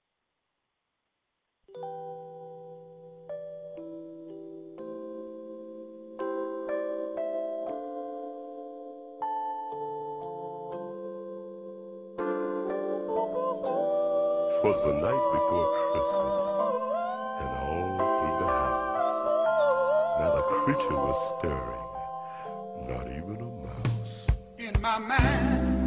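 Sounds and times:
Christmas song intro with chimes: 1.7 - 24.5
speech: 14.6 - 18.1, 20.5 - 21.9, 24.8 - 25.7.

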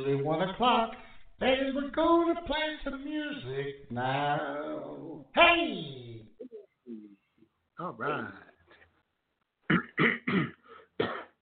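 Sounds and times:
speech: 0.0 - 6.2, 7.8 - 8.4, 10.0 - 11.2
person coughing harshly: 9.7 - 11.4
soft low throat clearing: 9.7 - 11.4.

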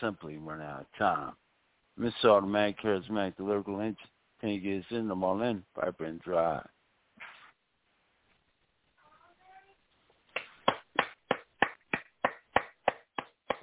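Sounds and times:
speech: 0.0 - 1.4, 2.0 - 6.8
sharp hand claps: 10.3 - 13.6.

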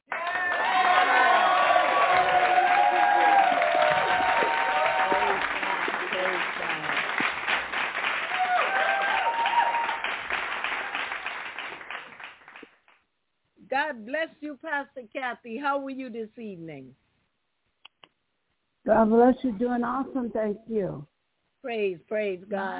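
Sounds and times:
audience applauding: 0.1 - 12.9
speech: 14.8 - 17.0, 18.9 - 22.7.

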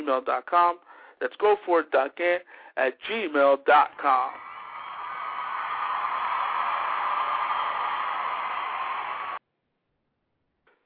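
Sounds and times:
speech: 0.1 - 4.4
crowd roar: 4.3 - 9.4.

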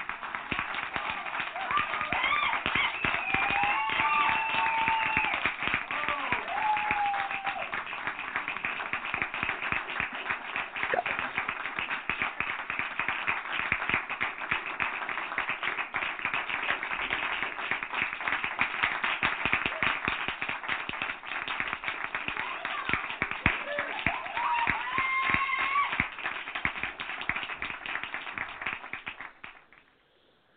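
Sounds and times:
live studio audience applauding at a 13th anniversary special: 0.0 - 29.9.

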